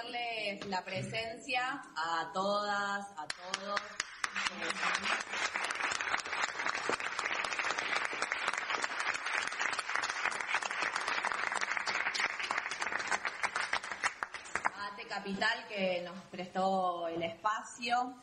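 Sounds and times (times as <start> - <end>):
speech: 0.0 - 5.6, 15.3 - 18.2
audience applause: 4.0 - 14.8.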